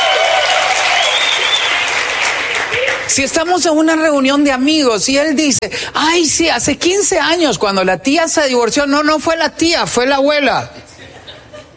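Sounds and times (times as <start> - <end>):
men applauding: 0.0 - 3.1
speech: 3.2 - 10.8
laughter: 10.8 - 11.7.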